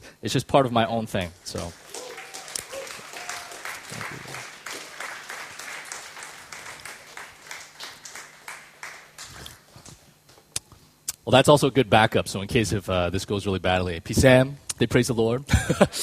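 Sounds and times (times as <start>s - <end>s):
speech: 0.2s - 1.8s, 11.3s - 16.0s
crowd clapping in worship: 1.2s - 10.0s.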